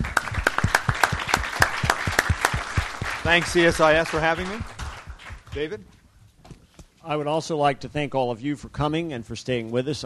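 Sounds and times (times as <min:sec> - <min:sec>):
audience applause for a panel discussion at a CSIS event: 0:00.0 - 0:05.7
speech: 0:03.2 - 0:04.7, 0:05.5 - 0:06.0, 0:07.0 - 0:10.0.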